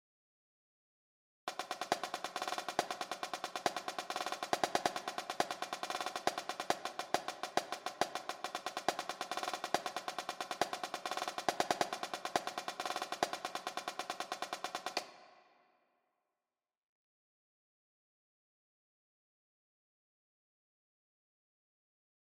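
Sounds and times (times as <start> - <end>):
jig snare drum: 1.5 - 15.3.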